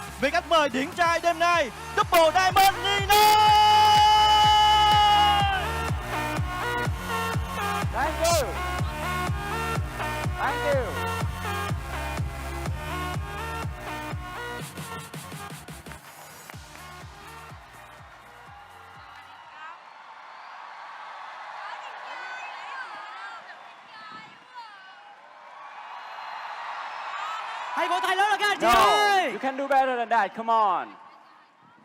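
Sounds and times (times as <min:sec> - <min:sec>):
loud music: 0:00.0 - 0:19.2
speech: 0:00.2 - 0:03.7, 0:28.0 - 0:31.0
crowd cheering and whooping welcoming a guest: 0:02.6 - 0:11.0, 0:15.4 - 0:30.0
clapping: 0:15.7 - 0:19.7, 0:27.8 - 0:29.9.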